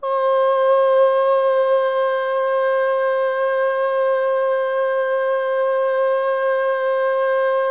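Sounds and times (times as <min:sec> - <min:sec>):
boy singing solo: 0:00.0 - 0:07.6.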